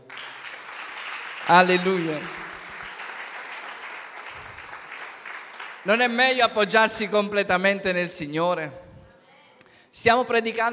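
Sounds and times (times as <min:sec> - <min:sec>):
applause: 0:00.0 - 0:06.6
speech: 0:01.5 - 0:02.4, 0:05.8 - 0:08.8, 0:10.0 - 0:10.7.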